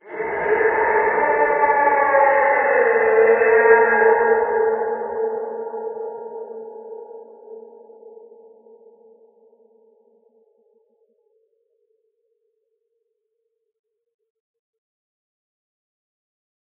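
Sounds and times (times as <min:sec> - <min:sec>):
forest scream: 0:00.0 - 0:05.1.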